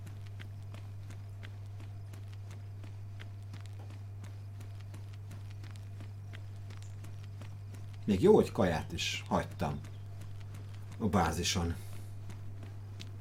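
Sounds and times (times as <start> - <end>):
low droning hum: 0.0 - 13.1
running footsteps: 0.0 - 13.1
speech: 8.1 - 9.9, 11.0 - 11.8.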